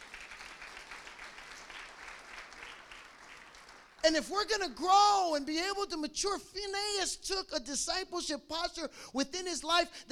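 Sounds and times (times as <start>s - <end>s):
audience applause: 0.0s - 4.0s
speech: 4.0s - 10.1s.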